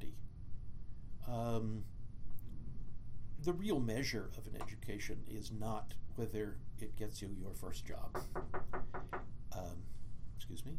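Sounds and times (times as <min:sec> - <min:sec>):
speech: 0:01.3 - 0:02.0, 0:03.4 - 0:10.7
knocks on a door: 0:08.1 - 0:09.3.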